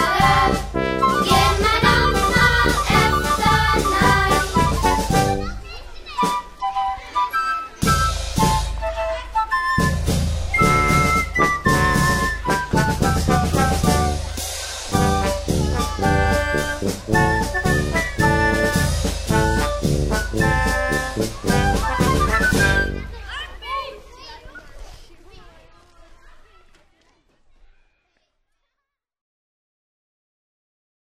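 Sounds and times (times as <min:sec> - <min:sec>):
fanfare: 0:00.0 - 0:23.4.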